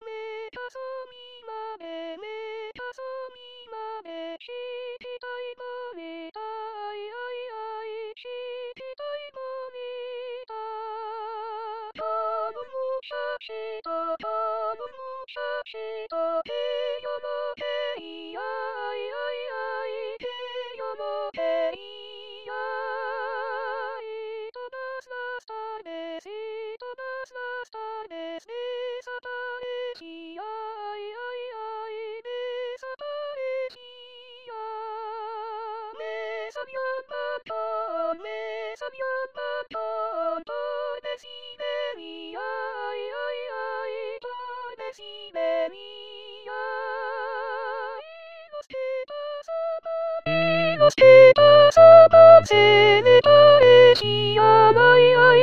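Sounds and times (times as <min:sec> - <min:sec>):
tenors singing: 0:12.0 - 0:24.2, 0:36.0 - 0:48.1, 0:50.3 - 0:55.4.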